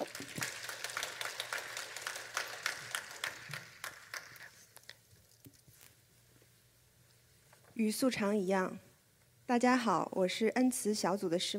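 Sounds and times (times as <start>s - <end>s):
audience applause: 0.0s - 4.8s
speech: 7.8s - 8.9s, 9.5s - 11.5s.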